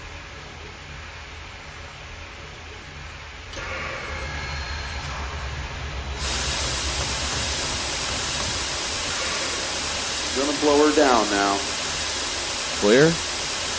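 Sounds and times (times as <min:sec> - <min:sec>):
Big Boy 4014 steam locomotive: 0:03.5 - 0:13.7.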